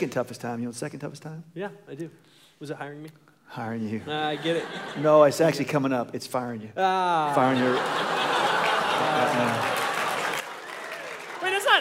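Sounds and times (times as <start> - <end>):
speech: 0.0 - 9.8
laughter: 4.0 - 5.7, 7.2 - 10.7
crowd clapping: 7.5 - 11.7.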